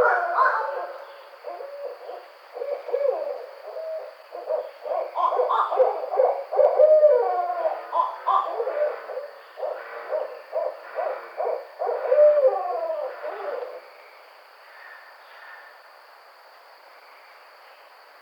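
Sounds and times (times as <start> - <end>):
Barred Owl calling: 0.0 - 13.8.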